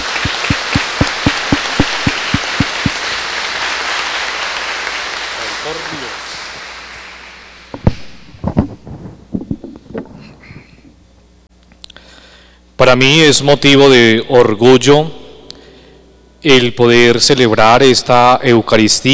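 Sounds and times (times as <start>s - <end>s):
strong applause: 0.0s - 7.7s
speech: 12.8s - 15.2s, 16.4s - 19.1s.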